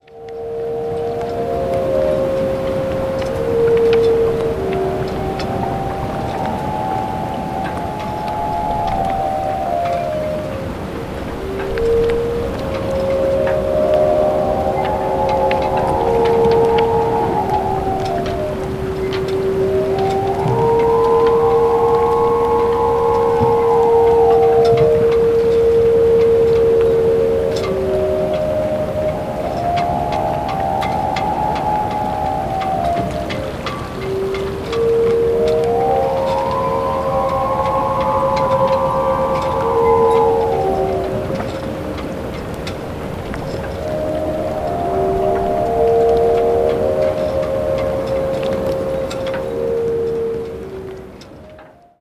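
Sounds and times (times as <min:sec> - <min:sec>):
mystic melody: 0:00.0 - 0:51.9.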